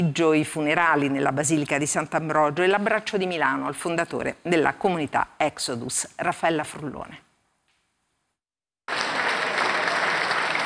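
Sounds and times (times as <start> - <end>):
speech: 0.0 - 7.3
applause as coffin leaves the basilica: 8.9 - 10.6.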